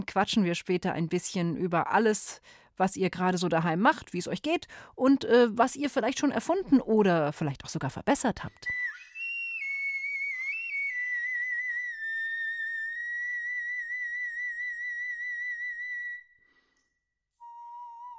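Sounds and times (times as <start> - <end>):
speech: 0.0 - 8.8
bone flute playing: 8.7 - 16.3, 17.4 - 18.1.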